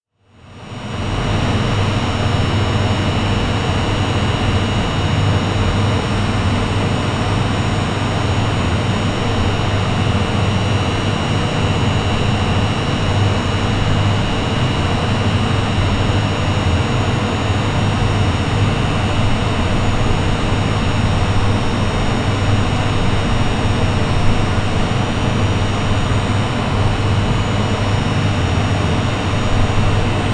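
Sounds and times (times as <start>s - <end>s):
wind energy plant interior ambience: 1.0s - 30.3s.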